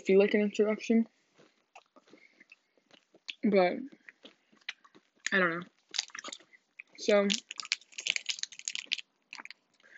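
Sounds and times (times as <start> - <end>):
speech: 0.0 - 1.2, 3.4 - 4.0, 5.3 - 6.4, 7.0 - 7.6
chewing while eating: 1.4 - 9.9.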